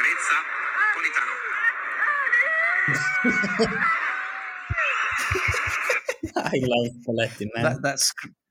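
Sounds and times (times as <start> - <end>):
speech: 0.2 - 1.7, 2.9 - 4.1, 6.4 - 8.4
man's high-pitched screech: 2.6 - 6.3
laughter: 2.9 - 8.2.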